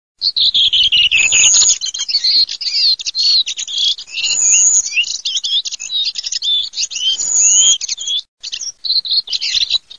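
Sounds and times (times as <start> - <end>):
redwing calls in high twittering chatter: 0.2 - 9.9.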